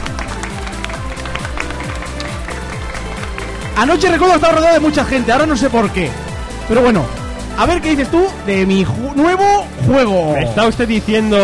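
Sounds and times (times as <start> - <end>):
audience applause: 0.0 - 6.5
speech: 3.8 - 11.4.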